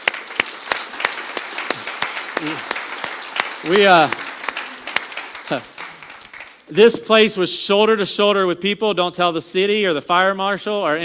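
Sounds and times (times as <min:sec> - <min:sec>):
audience applauding: 0:00.0 - 0:06.8
speech: 0:02.4 - 0:02.8, 0:03.6 - 0:04.2, 0:05.5 - 0:05.7, 0:06.7 - 0:11.0.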